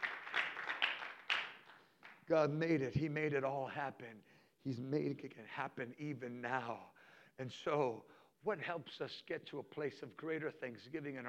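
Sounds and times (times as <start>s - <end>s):
audience clapping hands: 0.0s - 2.4s
speech: 2.3s - 11.2s.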